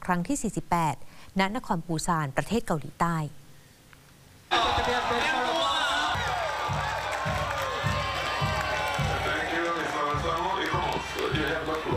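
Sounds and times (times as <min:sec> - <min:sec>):
speech: 0:00.1 - 0:03.4
crowd cheering and applauding at celebration: 0:04.5 - 0:11.9
steady pulsing beat: 0:05.8 - 0:11.9.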